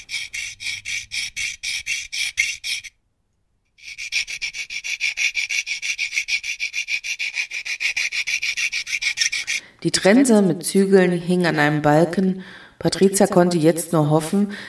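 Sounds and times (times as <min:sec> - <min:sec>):
metal file rasping through a padlock: 0:00.0 - 0:03.0, 0:03.8 - 0:09.6
speech: 0:09.8 - 0:14.6.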